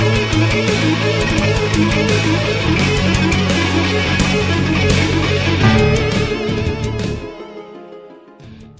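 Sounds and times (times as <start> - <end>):
neoclassical backing track: 0.1 - 8.5
Washburn N4 electric guitar shred solo: 5.6 - 7.9.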